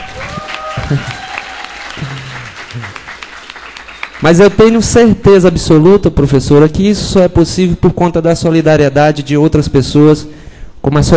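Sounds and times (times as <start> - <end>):
audience applause: 0.0 - 4.4
speech: 0.9 - 1.3, 2.8 - 3.0, 4.2 - 11.1.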